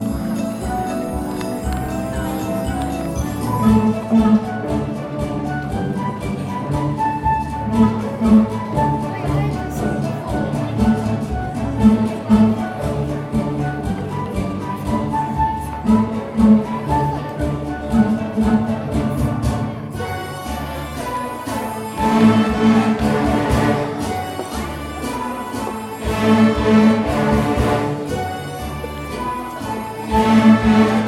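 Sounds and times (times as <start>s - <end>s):
concert music: 0.0s - 31.0s.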